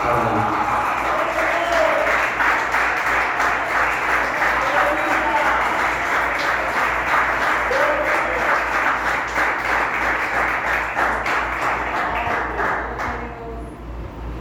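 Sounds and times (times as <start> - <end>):
cheers and voices: 0.0 - 2.2, 4.5 - 6.8, 7.4 - 8.7
loud applause from a large crowd: 0.0 - 13.4.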